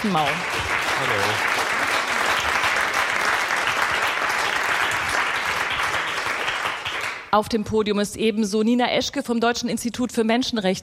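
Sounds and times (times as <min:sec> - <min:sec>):
speech: 0:00.0 - 0:01.6, 0:07.3 - 0:10.8
applause: 0:00.0 - 0:07.3.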